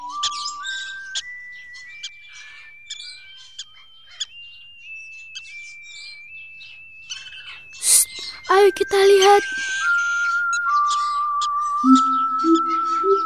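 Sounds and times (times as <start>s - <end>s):
birds chirping: 7.8s - 13.2s
speech: 8.5s - 9.6s
steady rising whistle-like tone: 10.0s - 13.2s.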